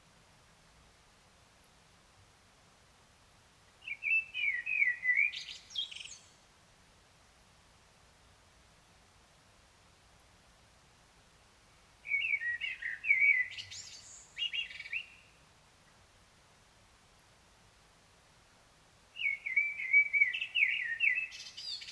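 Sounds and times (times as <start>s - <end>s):
Common blackbird singing: 3.8s - 6.3s, 12.0s - 15.4s, 19.2s - 21.9s.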